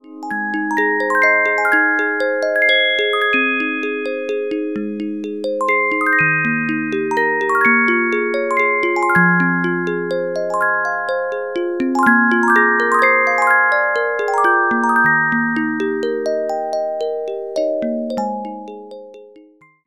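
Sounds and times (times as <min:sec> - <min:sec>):
carillon music box melodies: 0:00.0 - 0:19.8.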